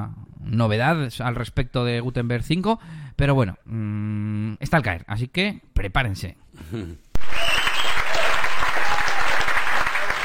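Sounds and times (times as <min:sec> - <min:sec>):
speech: 0:00.0 - 0:07.4
applause sound effect from soundboard: 0:07.2 - 0:10.2.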